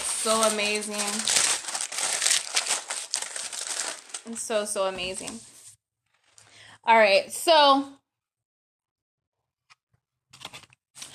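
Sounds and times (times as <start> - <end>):
aluminium foil crinkling as it is pressed over a dish: 0.0 - 5.4
speech: 0.2 - 1.4, 4.3 - 5.5, 6.8 - 8.0.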